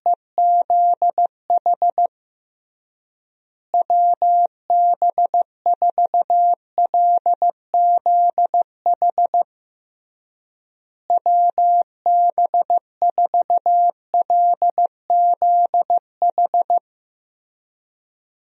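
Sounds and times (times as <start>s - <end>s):
Morse code call sign beeps: 0.1s - 2.0s, 3.8s - 9.5s, 11.1s - 16.8s.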